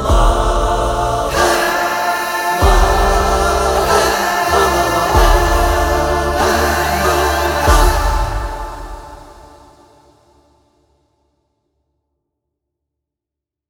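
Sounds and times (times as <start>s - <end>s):
epic emotional vocals: 0.0s - 10.4s.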